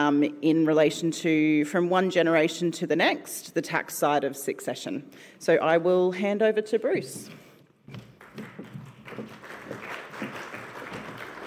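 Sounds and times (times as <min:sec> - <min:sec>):
speech: 0:00.0 - 0:08.0
person clapping: 0:08.0 - 0:11.4.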